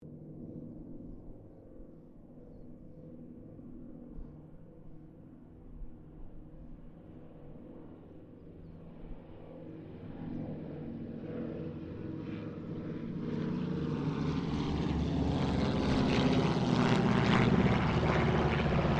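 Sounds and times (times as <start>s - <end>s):
CT4 Winjeel Wirraway Harvard aircraft passing: 6.8s - 18.9s.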